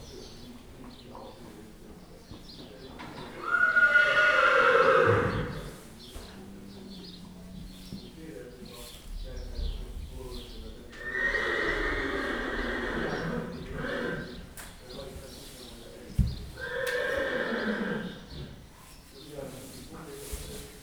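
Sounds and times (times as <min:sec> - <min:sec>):
horses neighing while being led out of a stable: 0:03.0 - 0:05.9, 0:10.9 - 0:14.6, 0:16.6 - 0:18.6.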